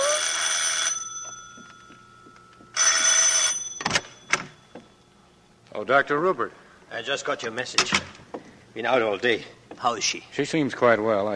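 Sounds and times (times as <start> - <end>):
bell ringing in rattling bursts: 0.0 - 5.1
speech: 5.8 - 11.3.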